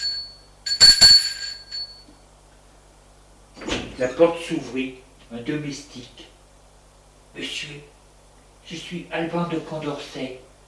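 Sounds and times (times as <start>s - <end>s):
doorbell ringing: 0.0s - 2.1s
speech: 4.0s - 6.3s, 7.4s - 7.9s, 8.7s - 10.5s.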